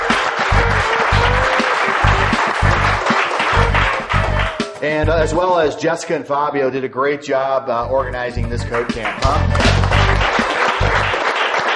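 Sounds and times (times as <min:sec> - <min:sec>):
audience applause: 0:00.0 - 0:04.8, 0:09.0 - 0:11.7
speech: 0:04.8 - 0:09.8.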